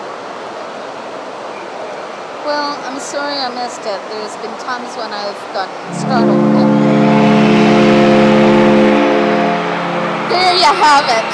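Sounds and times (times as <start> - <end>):
speech: 2.4 - 6.8, 10.6 - 11.3
foghorn: 5.9 - 11.3.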